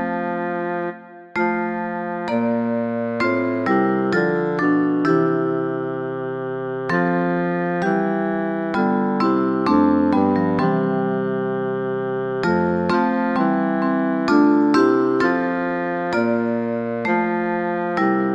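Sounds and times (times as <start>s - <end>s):
bassoon: 0.0s - 18.3s
vibraphone: 1.3s - 6.2s, 6.9s - 11.6s, 12.4s - 18.3s.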